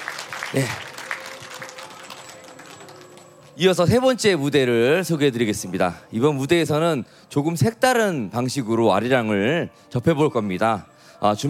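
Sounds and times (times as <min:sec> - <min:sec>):
audience applauding a folk music group: 0:00.0 - 0:03.6
speech: 0:00.5 - 0:00.9, 0:03.6 - 0:11.4.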